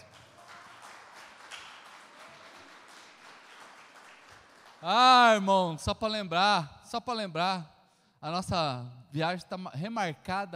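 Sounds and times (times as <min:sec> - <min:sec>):
audience applauding: 0:00.0 - 0:05.5
speech: 0:04.8 - 0:10.5.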